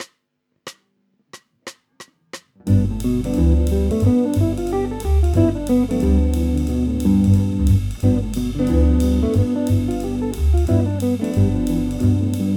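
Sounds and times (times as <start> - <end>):
guitar exercise on G7 chord in drop 3: 2.6 - 12.5.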